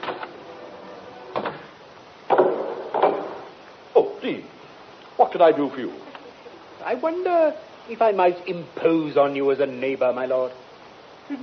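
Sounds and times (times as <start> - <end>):
front door being opened: 1.2 - 3.4
speech: 4.2 - 4.6, 5.2 - 6.1, 6.8 - 10.6, 11.3 - 11.4.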